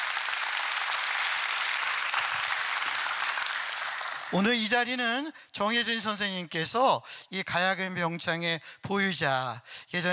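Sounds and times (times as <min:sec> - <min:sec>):
audience applause: 0:00.0 - 0:04.4
speech: 0:04.3 - 0:10.1.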